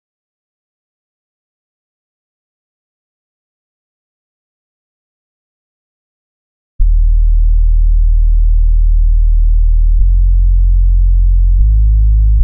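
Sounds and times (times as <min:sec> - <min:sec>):
bass: 0:06.8 - 0:12.4.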